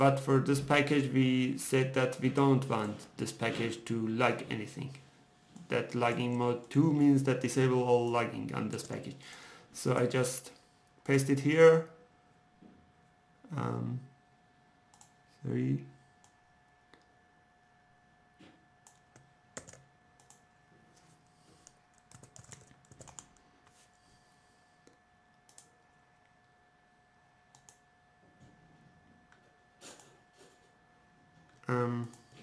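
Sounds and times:
speech: 0:00.0 - 0:05.0, 0:05.7 - 0:12.0, 0:13.5 - 0:14.1, 0:15.4 - 0:15.9, 0:31.7 - 0:32.2
typing on a computer keyboard: 0:18.9 - 0:20.4, 0:21.9 - 0:23.4.

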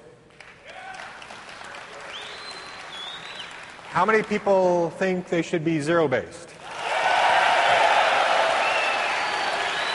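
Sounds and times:
audience applause: 0:00.6 - 0:04.4, 0:06.6 - 0:09.9
speech: 0:03.9 - 0:06.5.

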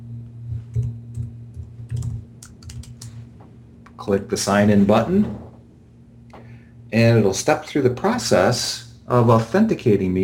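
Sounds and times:
typing username and password on a computer keyboard: 0:00.7 - 0:03.1
speech: 0:04.0 - 0:05.4, 0:06.9 - 0:10.2.

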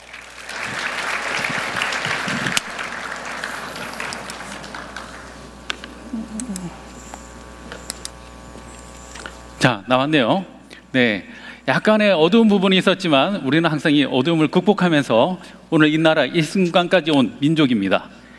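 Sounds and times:
audience applause: 0:00.0 - 0:05.6
speech: 0:09.6 - 0:18.2.

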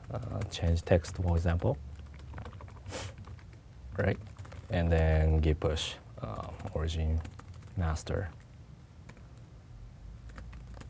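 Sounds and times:
computer keyboard typing a password during a git push: 0:00.0 - 0:05.5, 0:06.3 - 0:08.5, 0:09.1 - 0:09.5, 0:10.3 - 0:10.8
low steady hum: 0:00.0 - 0:10.8
speech: 0:00.1 - 0:01.9, 0:04.0 - 0:08.4.

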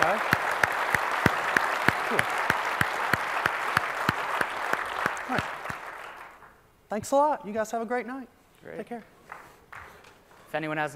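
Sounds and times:
audience applause: 0:00.0 - 0:06.5
speech: 0:02.1 - 0:02.4, 0:06.9 - 0:09.2, 0:10.5 - 0:10.9.

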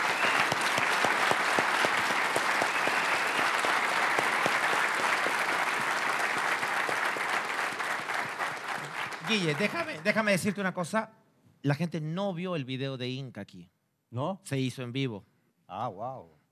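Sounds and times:
audience applause: 0:00.0 - 0:10.6
speech: 0:09.3 - 0:16.4.

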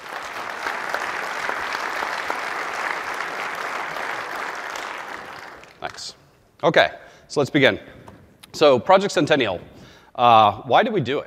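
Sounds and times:
audience round of applause: 0:00.0 - 0:06.0
speech: 0:05.8 - 0:08.0, 0:08.6 - 0:11.2.

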